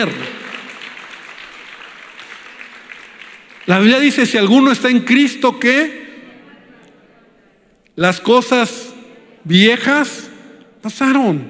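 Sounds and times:
speech: 0.0 - 0.4, 3.7 - 6.0, 8.0 - 11.4
audience applauding: 0.0 - 4.2.

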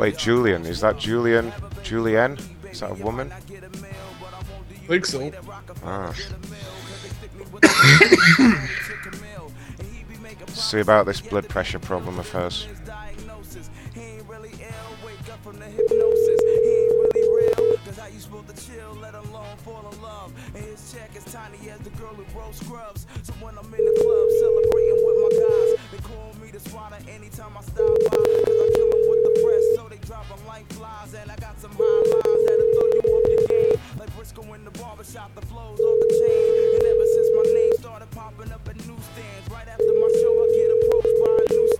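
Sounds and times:
speech: 0.0 - 4.0, 4.9 - 6.8, 7.5 - 9.4, 10.5 - 13.0
laughter: 6.9 - 9.6
telephone ringback tone on an outgoing call: 15.8 - 17.9, 23.8 - 25.8, 27.8 - 29.8, 31.8 - 33.8, 35.8 - 37.8, 39.8 - 41.7.

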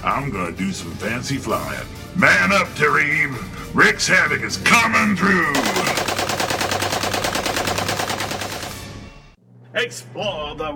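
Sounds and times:
speech: 0.0 - 6.0, 9.8 - 10.7
.50 caliber machine gun firing from a roof turret: 5.6 - 9.1.

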